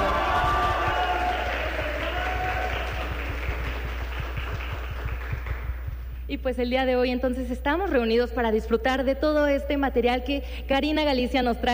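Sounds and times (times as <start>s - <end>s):
audience applause: 0.0s - 6.0s
speech: 6.3s - 11.7s.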